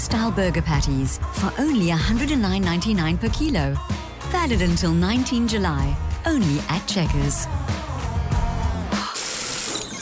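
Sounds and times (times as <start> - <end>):
speech: 0.1 - 7.8
cold shower running: 9.0 - 9.9.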